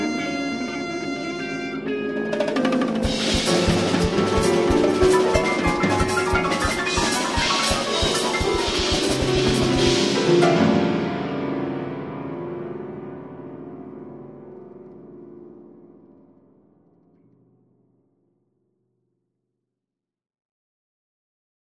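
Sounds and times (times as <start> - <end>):
crossover improvised music: 0.0 - 12.0.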